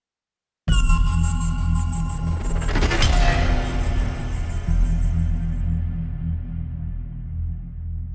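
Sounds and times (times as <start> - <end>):
horror tension music: 0.7 - 8.0.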